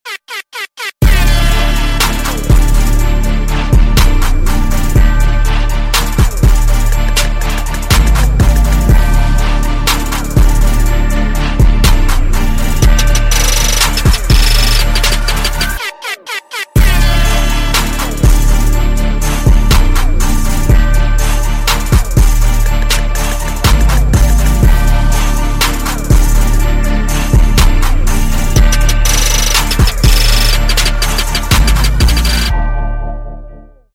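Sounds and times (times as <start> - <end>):
instrumental music: 0.0 - 33.9.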